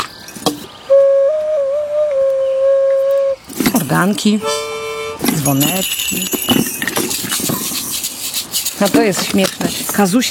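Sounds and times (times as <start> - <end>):
ocarina sustained tone: 0.9 - 3.5, 4.1 - 8.0
speech: 3.9 - 4.6, 5.3 - 6.8, 8.8 - 10.2.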